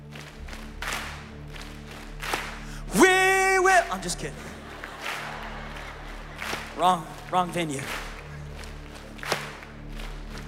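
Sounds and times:
audience stomp stomp clap rhythm: 0.0 - 4.2, 4.8 - 10.4
speech: 3.9 - 4.6, 6.8 - 8.0
laughter: 4.0 - 8.7.

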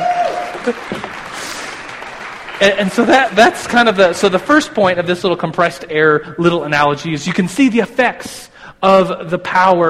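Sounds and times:
applause: 0.0 - 4.5
speech: 0.7 - 1.1, 2.6 - 9.8.

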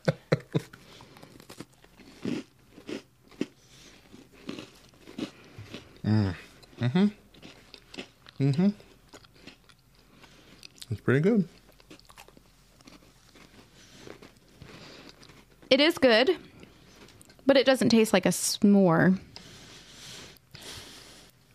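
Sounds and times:
crunching and chewing of a Girl Scout graham cracker cookie: 0.6 - 17.5
murmured vocal sounds: 6.0 - 7.2
speech: 6.1 - 7.2, 8.4 - 8.9, 11.1 - 11.6, 15.8 - 16.5, 17.5 - 19.3.

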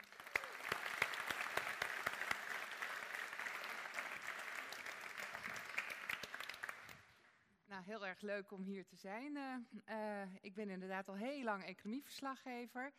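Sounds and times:
audience applause: 0.0 - 7.1
speech: 7.8 - 12.9.

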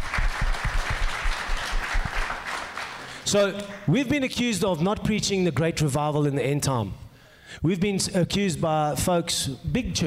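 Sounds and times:
audience applause: 0.0 - 3.3
speech: 3.3 - 10.0.

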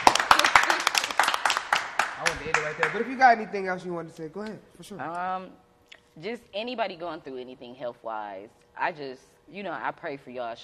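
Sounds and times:
clapping: 0.0 - 3.1
speech: 2.4 - 5.6, 6.2 - 10.6.

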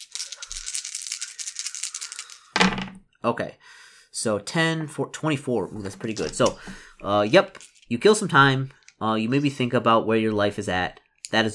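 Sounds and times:
four dice rolling: 0.0 - 3.0, 5.8 - 9.0
speech: 3.2 - 11.5.

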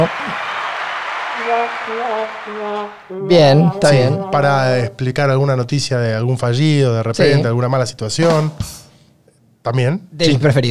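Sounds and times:
applause sound effect: 0.0 - 4.4
voices calling and cheering: 0.0 - 5.0
speech: 1.4 - 8.8, 9.6 - 10.6.

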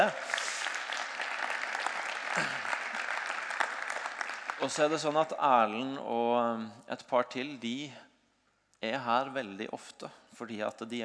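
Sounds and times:
audience applause: 0.0 - 5.4
speech: 4.6 - 8.0, 8.8 - 11.0.

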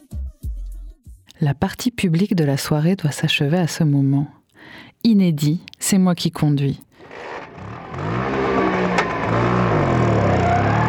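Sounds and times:
speech: 1.4 - 7.3
red 125 Vespa scooter engine: 7.0 - 10.8.

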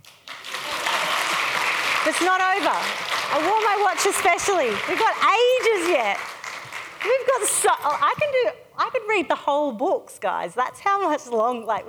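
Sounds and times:
applause: 0.0 - 8.2
speech: 2.0 - 6.4, 7.0 - 11.8.

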